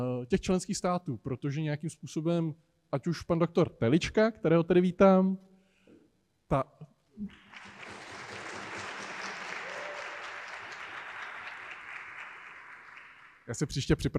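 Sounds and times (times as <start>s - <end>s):
speech: 0.0s - 5.5s, 6.5s - 7.4s, 13.5s - 14.1s
audience applause: 7.3s - 13.5s.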